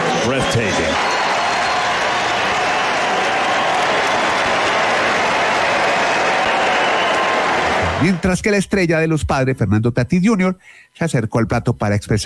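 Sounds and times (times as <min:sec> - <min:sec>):
stadium crowd ovation: 0:00.0 - 0:08.6
speech: 0:00.4 - 0:01.2, 0:08.0 - 0:12.2.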